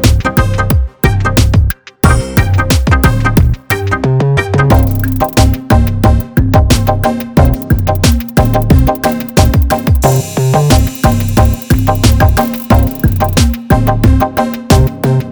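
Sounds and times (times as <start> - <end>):
techno trap beat with 808 bass: 0.0 - 4.0, 4.7 - 15.2.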